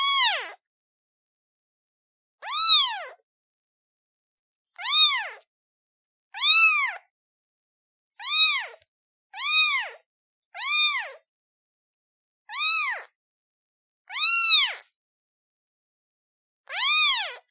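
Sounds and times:
kitten meowing: 0.0s - 0.6s, 2.4s - 3.2s, 4.8s - 5.4s, 6.4s - 7.0s, 8.2s - 8.8s, 9.4s - 10.0s, 10.6s - 11.2s, 12.5s - 13.1s, 14.1s - 14.8s, 16.7s - 17.4s.

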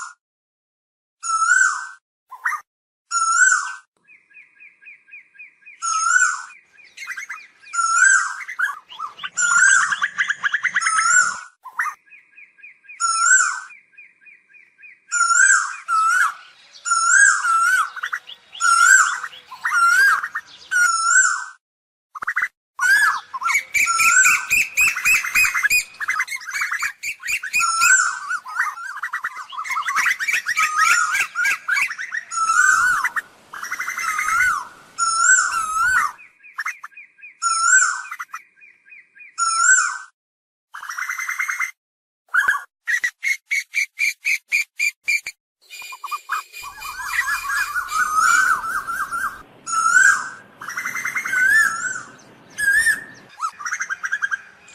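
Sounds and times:
cuckoo calling: 1.3s - 21.6s, 22.2s - 40.1s, 42.3s - 54.7s.

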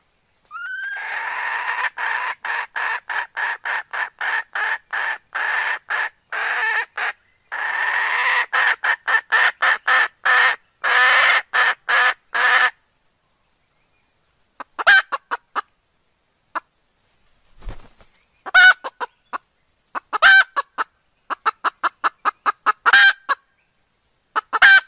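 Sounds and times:
hen clucking in a coop: 0.5s - 12.7s, 14.6s - 15.7s, 18.4s - 23.4s, 24.4s - 24.8s.

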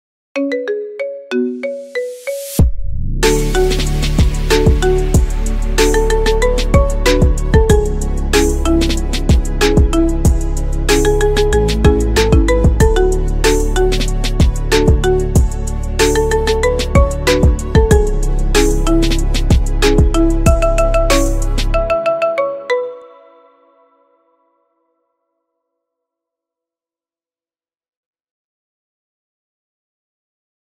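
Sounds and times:
marimba ringtone: 0.4s - 2.6s, 3.2s - 23.4s.

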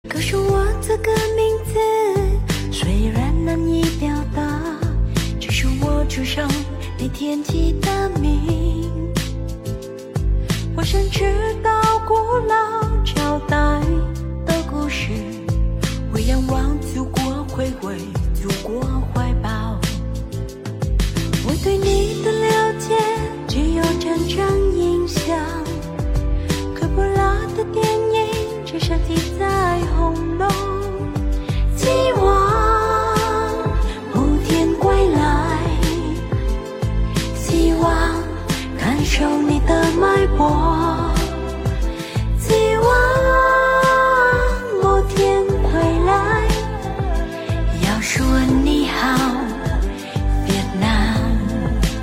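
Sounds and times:
Chinese-language music: 0.0s - 52.0s.

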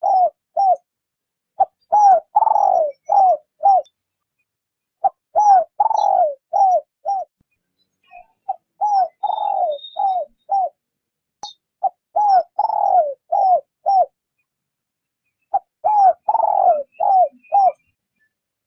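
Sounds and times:
spotted dove cooing: 0.0s - 0.9s, 1.6s - 3.9s, 5.0s - 7.3s, 8.5s - 10.8s, 11.8s - 14.2s, 15.5s - 17.9s.

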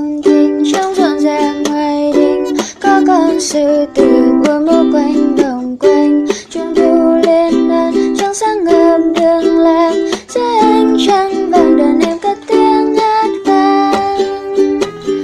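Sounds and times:
song: 0.2s - 15.2s.

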